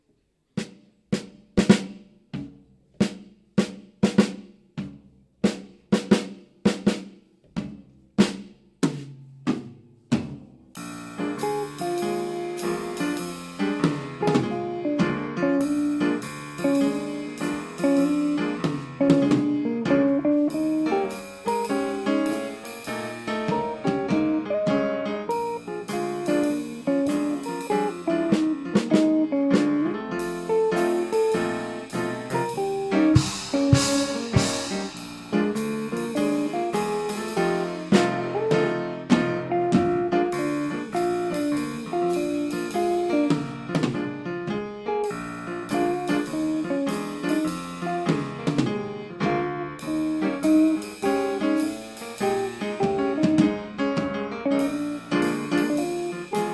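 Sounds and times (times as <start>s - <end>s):
blues music: 0.6s - 56.5s.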